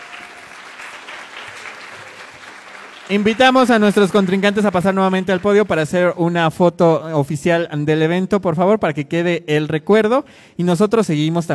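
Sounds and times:
audience applause: 0:00.0 - 0:06.1
speech: 0:03.1 - 0:11.5.

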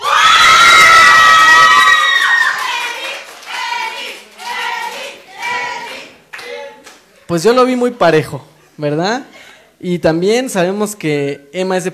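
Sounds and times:
audience applauding and cheering: 0:00.0 - 0:06.0
speech: 0:07.3 - 0:11.9.

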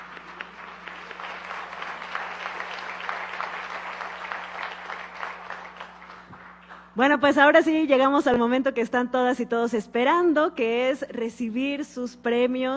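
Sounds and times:
audience applauding: 0:00.0 - 0:07.0
faint low hum: 0:00.0 - 0:12.7
speech: 0:07.0 - 0:12.7.

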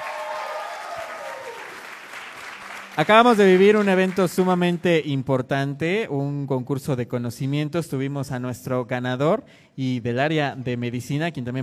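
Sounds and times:
audience applause: 0:00.0 - 0:04.9
speech: 0:03.0 - 0:11.6.

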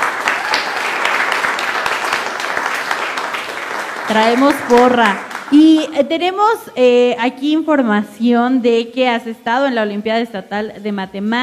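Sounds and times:
audience applause: 0:00.0 - 0:05.9
speech: 0:04.1 - 0:11.4.

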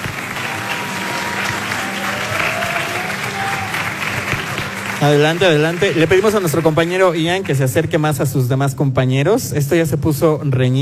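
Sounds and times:
crowd applauding: 0:00.0 - 0:08.2
speech: 0:05.0 - 0:10.8.

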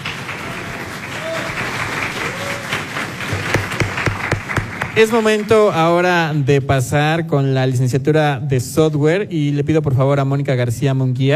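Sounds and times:
audience applause: 0:00.0 - 0:05.8
speech: 0:05.0 - 0:11.3.

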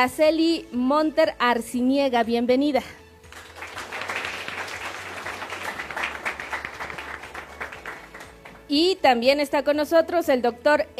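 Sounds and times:
speech: 0:00.0 - 0:03.0, 0:08.7 - 0:10.9
group applauding to welcome a female teacher: 0:03.2 - 0:08.7.

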